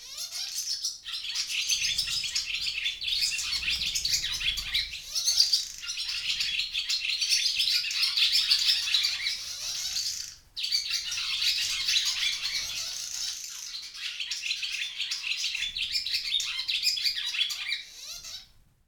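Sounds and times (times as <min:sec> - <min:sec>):
barn swallow twittering: 0:01.2 - 0:18.4.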